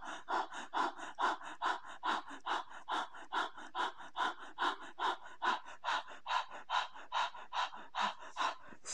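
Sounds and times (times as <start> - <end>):
rapid deliberate breathing almost hyperventilating: 0.0 - 8.9.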